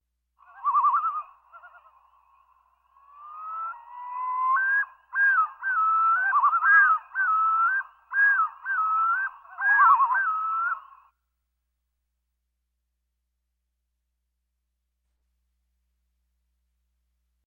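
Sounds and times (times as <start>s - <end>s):
birds: 0.4s - 11.1s.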